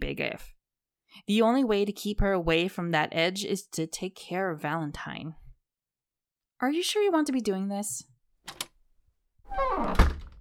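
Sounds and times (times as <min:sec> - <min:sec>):
speech: 0:00.2 - 0:05.4, 0:06.6 - 0:08.6, 0:09.5 - 0:10.1
door creaking and thumping: 0:09.5 - 0:10.3.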